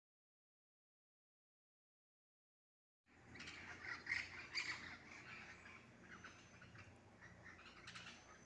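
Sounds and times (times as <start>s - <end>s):
parakeets screeching: 3.3s - 8.4s.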